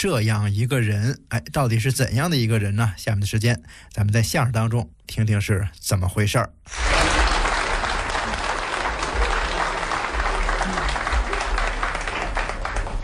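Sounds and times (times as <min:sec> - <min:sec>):
speech: 0:00.0 - 0:07.2
audience warm applause: 0:06.7 - 0:13.0.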